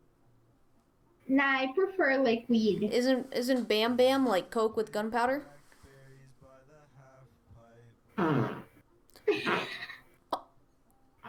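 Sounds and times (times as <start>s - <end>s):
speech: 1.3s - 5.6s
fart: 8.2s - 10.0s.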